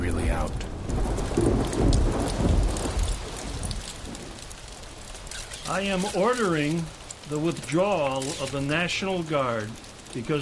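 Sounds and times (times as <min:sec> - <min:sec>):
deep rumble: 0:00.0 - 0:04.5
heavy rain pouring: 0:00.0 - 0:10.4
speech: 0:01.4 - 0:02.7, 0:05.7 - 0:10.4.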